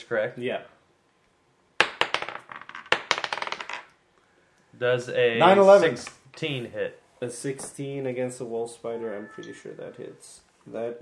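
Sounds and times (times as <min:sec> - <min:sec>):
speech: 0:00.1 - 0:00.8, 0:04.8 - 0:11.0
dice rolling on a table: 0:01.8 - 0:04.0.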